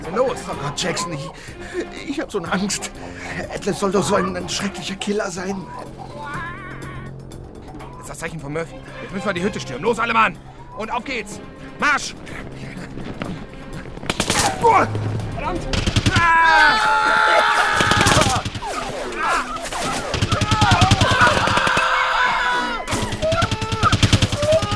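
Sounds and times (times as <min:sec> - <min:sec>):
speech: 0:00.1 - 0:06.1, 0:08.1 - 0:13.4, 0:14.6 - 0:17.2
gunfire: 0:12.7 - 0:16.3, 0:17.7 - 0:21.9, 0:22.9 - 0:24.7.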